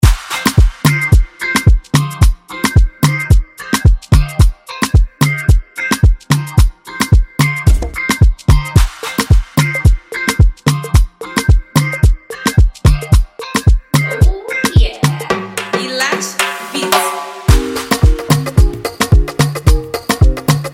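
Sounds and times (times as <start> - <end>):
afro groove music: 0.0 - 20.7.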